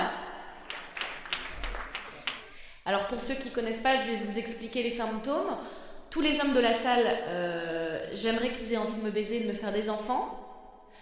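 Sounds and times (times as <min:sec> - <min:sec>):
light scattered audience applause: 0:00.6 - 0:02.6
speech: 0:02.9 - 0:11.0.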